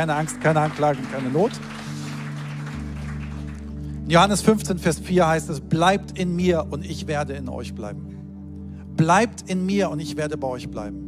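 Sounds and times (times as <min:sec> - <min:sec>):
speech: 0:00.0 - 0:01.8, 0:04.1 - 0:08.1, 0:09.0 - 0:11.0
audience applause: 0:00.0 - 0:04.1.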